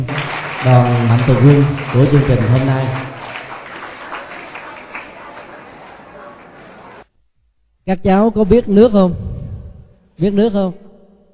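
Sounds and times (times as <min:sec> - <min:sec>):
speech: 0:00.0 - 0:03.1, 0:07.9 - 0:09.3, 0:10.2 - 0:10.8
children applauding: 0:00.0 - 0:07.0.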